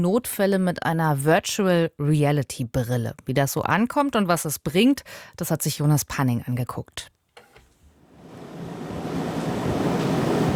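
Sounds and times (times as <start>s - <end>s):
speech: 0.0s - 7.2s
air conditioner rattling in a training room of the Cologne University Hospital: 8.2s - 10.5s.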